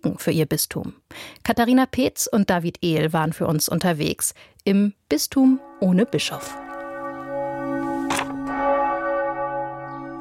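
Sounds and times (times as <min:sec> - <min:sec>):
speech: 0:00.0 - 0:06.6
church bell ringing in Schellenberg, Liechtenstein: 0:05.5 - 0:10.1.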